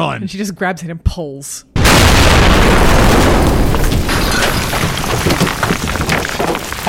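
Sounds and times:
speech: 0:00.0 - 0:03.8
explosion blast: 0:01.8 - 0:06.1
falling debris: 0:01.8 - 0:06.8.

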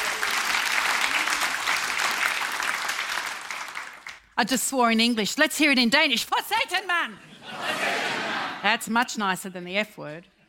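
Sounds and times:
round of applause: 0:00.0 - 0:04.3
speech: 0:04.4 - 0:07.9, 0:08.6 - 0:10.3
laughter: 0:07.1 - 0:08.6.

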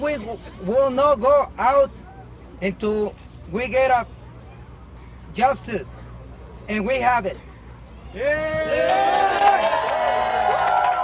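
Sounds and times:
speech: 0:00.0 - 0:02.0, 0:02.6 - 0:04.2, 0:05.3 - 0:06.0, 0:06.7 - 0:07.5, 0:08.1 - 0:09.8
crowd yelling and whooping in celebration: 0:08.1 - 0:11.0.

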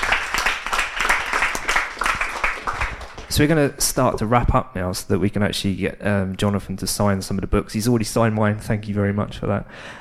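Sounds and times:
round of applause: 0:00.0 - 0:03.4
speech: 0:03.3 - 0:10.0.

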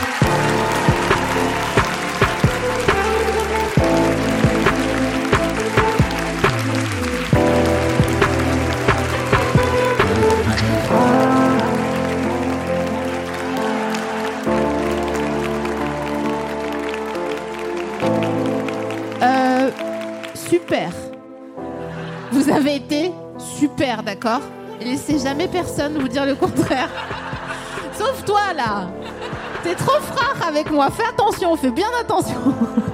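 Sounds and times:
audience applause: 0:00.0 - 0:22.3
laughter: 0:21.6 - 0:23.0, 0:26.4 - 0:28.3, 0:28.9 - 0:30.6, 0:32.3 - 0:32.9
speech: 0:24.0 - 0:27.2, 0:28.0 - 0:32.9.

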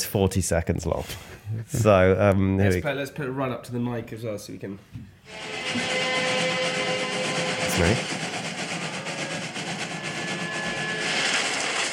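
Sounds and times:
speech: 0:00.0 - 0:06.2, 0:07.8 - 0:08.2
train going through a tunnel in a film scene: 0:05.3 - 0:11.9.

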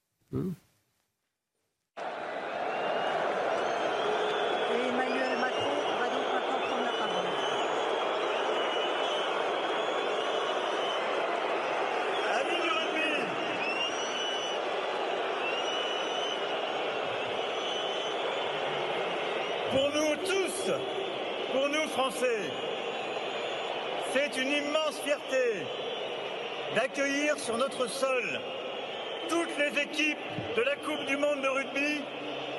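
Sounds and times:
speech: 0:00.3 - 0:00.7, 0:24.3 - 0:26.0, 0:26.7 - 0:28.6, 0:29.2 - 0:32.3
large crowd whistling and jeering: 0:02.0 - 0:32.5.

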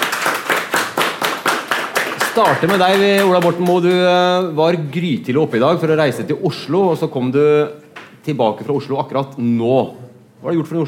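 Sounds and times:
audience applause: 0:00.0 - 0:03.8
speech: 0:00.2 - 0:00.5, 0:02.4 - 0:10.8.

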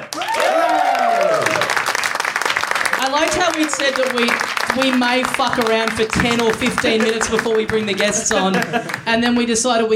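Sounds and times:
audience applause welcoming podcast guests onto a stage: 0:00.0 - 0:09.5
speech: 0:03.1 - 0:09.9
laughter: 0:06.5 - 0:09.3.

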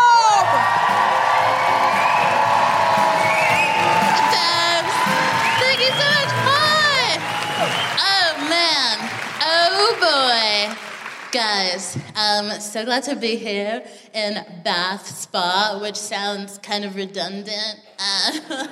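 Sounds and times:
audience whooping: 0:00.2 - 0:09.9
audience cheering: 0:00.2 - 0:11.3
speech: 0:12.4 - 0:18.7.

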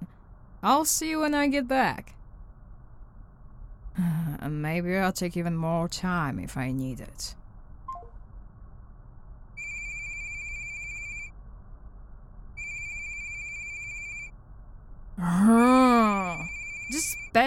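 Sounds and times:
speech: 0:00.6 - 0:02.2, 0:04.0 - 0:07.4
phone ringtone from an unknown caller: 0:09.6 - 0:11.3, 0:12.6 - 0:14.3, 0:16.4 - 0:17.3
person groaning: 0:15.2 - 0:16.5.

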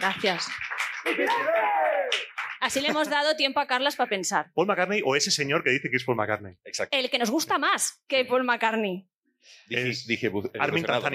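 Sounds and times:
speech: 0:00.0 - 0:01.8, 0:02.6 - 0:11.1
applause: 0:00.0 - 0:03.3.

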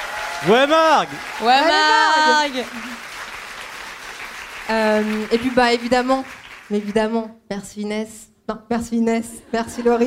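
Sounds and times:
crowd applause: 0:00.0 - 0:07.0
speech: 0:00.4 - 0:03.1, 0:04.7 - 0:10.0.

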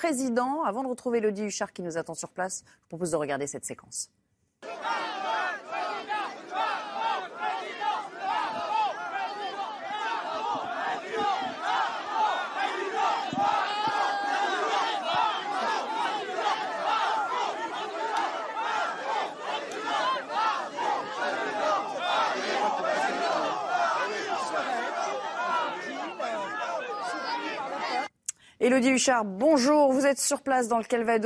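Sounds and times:
speech: 0:00.0 - 0:04.2, 0:28.6 - 0:31.2
large crowd booing and chanting in unison: 0:04.6 - 0:28.1.

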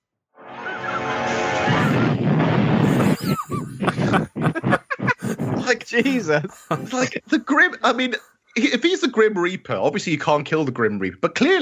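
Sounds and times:
explosion sound effect: 0:01.6 - 0:04.2
laughter: 0:02.8 - 0:08.1
speech: 0:05.7 - 0:11.6.

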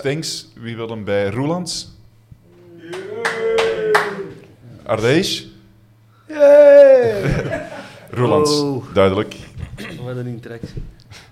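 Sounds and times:
speech: 0:00.0 - 0:02.0, 0:04.9 - 0:05.5, 0:06.3 - 0:09.4, 0:10.0 - 0:11.2
live audience clapping: 0:02.8 - 0:04.5
laughter: 0:07.0 - 0:08.6.

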